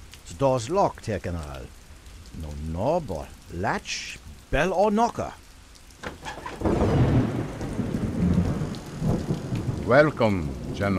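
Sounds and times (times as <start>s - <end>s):
steady rain: 0.0s - 10.9s
speech: 0.3s - 1.8s, 2.4s - 5.4s, 6.0s - 7.0s, 9.9s - 10.9s
deep rolling thunder: 6.2s - 10.9s.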